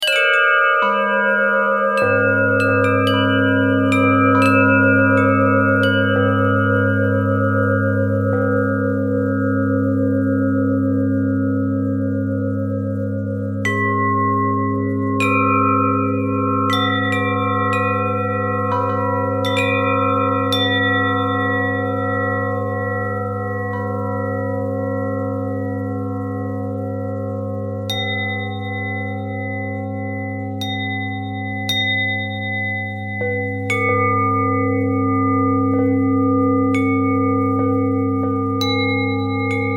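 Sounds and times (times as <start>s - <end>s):
bells ringing with harmonics: 0.0s - 39.7s.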